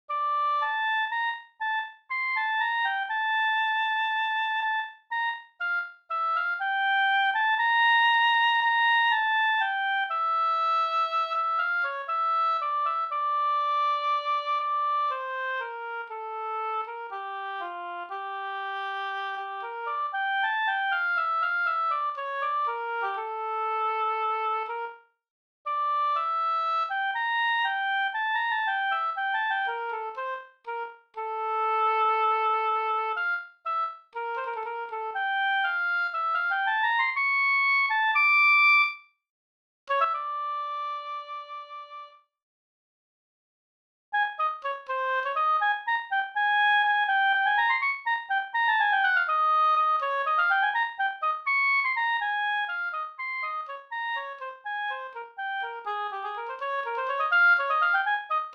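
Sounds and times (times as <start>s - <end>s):
oboe: 0.1s - 25.1s, 25.7s - 39.0s, 39.9s - 42.2s, 44.2s - 58.5s.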